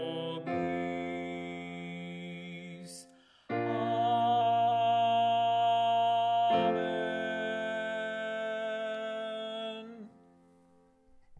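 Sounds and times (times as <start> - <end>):
tenor singing: 0.0 - 10.2.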